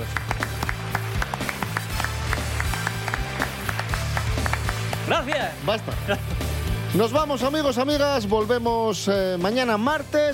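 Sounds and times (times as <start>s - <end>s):
audience applause: 0.0s - 5.7s
speech: 5.1s - 10.3s.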